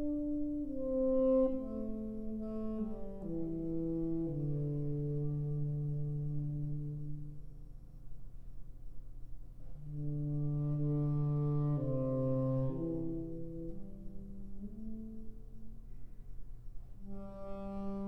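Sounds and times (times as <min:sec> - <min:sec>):
saxophone improvising a hymn: 0:00.0 - 0:07.4, 0:09.8 - 0:15.7, 0:17.0 - 0:18.0.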